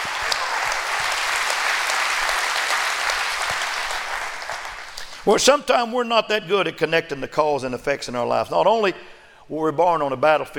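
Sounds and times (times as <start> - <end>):
audience clapping hands: 0.0 - 5.3
speech: 5.2 - 10.5.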